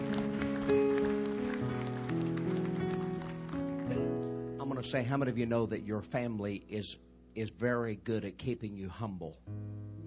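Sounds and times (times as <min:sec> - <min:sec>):
audience applause: 0:00.0 - 0:04.1
speech: 0:04.8 - 0:10.0.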